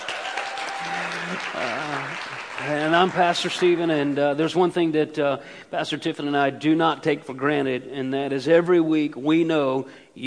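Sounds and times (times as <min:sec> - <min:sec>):
church congregation applauding to welcome first-time visitors: 0:00.0 - 0:04.2
speech: 0:01.3 - 0:10.2.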